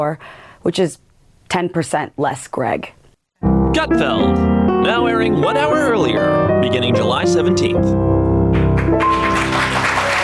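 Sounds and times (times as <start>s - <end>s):
speech: 0.0s - 8.2s
sustained musical tones: 3.4s - 9.8s
late-night television talk show studio audience applause: 8.5s - 10.2s.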